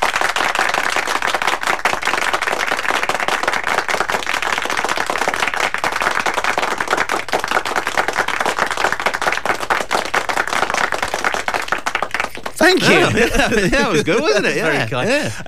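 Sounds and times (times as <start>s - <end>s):
round of applause: 0.0s - 14.8s
laughter: 12.3s - 15.4s
speech: 12.8s - 15.4s.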